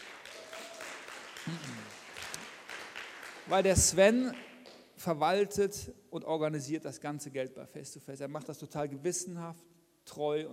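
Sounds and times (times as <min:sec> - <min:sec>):
audience applause: 0:00.0 - 0:04.0
speech: 0:01.5 - 0:01.8, 0:03.5 - 0:10.5.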